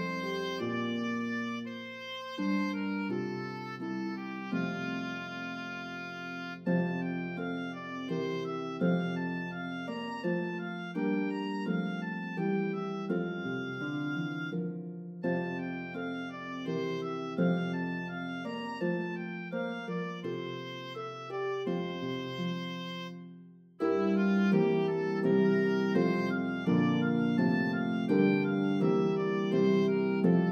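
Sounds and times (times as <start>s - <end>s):
harp playing a lullaby: 0.0s - 30.5s
oboe playing a lullaby: 0.0s - 30.5s.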